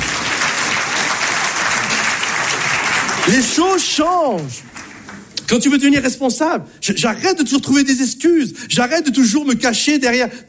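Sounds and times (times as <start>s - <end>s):
crowd applause: 0.0s - 5.3s
speech: 3.2s - 4.8s, 5.5s - 10.4s.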